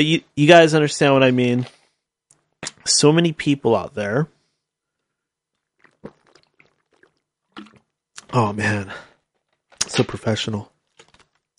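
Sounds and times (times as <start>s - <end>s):
speech: 0.0s - 1.8s, 2.8s - 4.4s, 8.3s - 9.1s, 9.8s - 10.7s
sipping Mountain Dew soda from a bottle: 5.7s - 8.3s.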